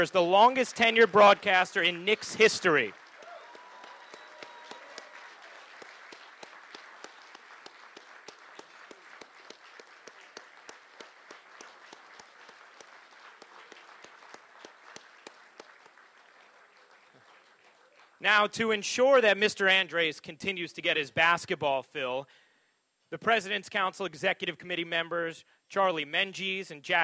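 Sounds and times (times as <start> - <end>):
speech: 0.0 - 3.0, 18.4 - 22.4, 23.1 - 27.0
crowd applauding: 0.0 - 18.2.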